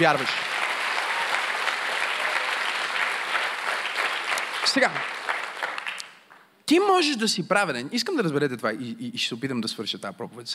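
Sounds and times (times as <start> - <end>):
speech: 0.0 - 0.5, 4.6 - 5.2, 6.7 - 10.5
church congregation applauding during a sermon: 0.0 - 6.5.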